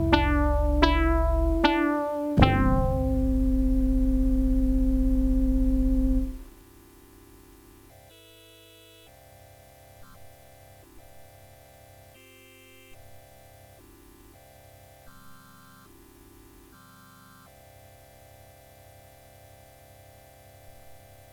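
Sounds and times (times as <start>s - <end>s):
Yamaha PortaSound VSS-100 keyboard: 0.0s - 6.7s.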